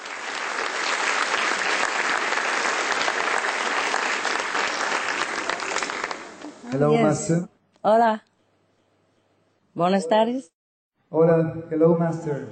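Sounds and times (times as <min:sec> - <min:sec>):
large audience applauding a spiritual teacher onto a stage: 0:00.0 - 0:06.7
speech: 0:06.7 - 0:08.3, 0:09.8 - 0:12.5.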